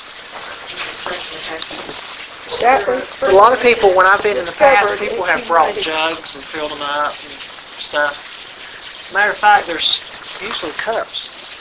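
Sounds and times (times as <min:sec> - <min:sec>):
spring water running from the spring: 0:00.0 - 0:11.5
speech: 0:01.0 - 0:08.3, 0:09.1 - 0:11.4.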